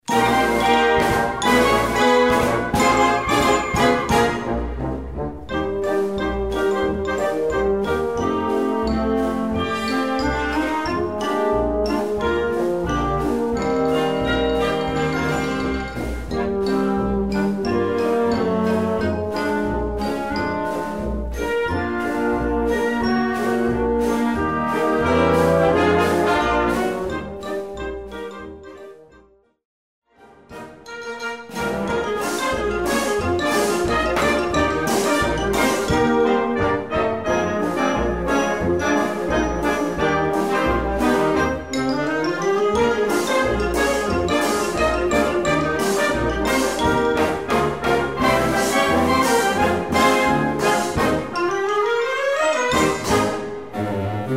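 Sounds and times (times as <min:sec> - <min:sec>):
Chinese rag tune: 0:00.0 - 0:28.9, 0:30.2 - 0:54.3.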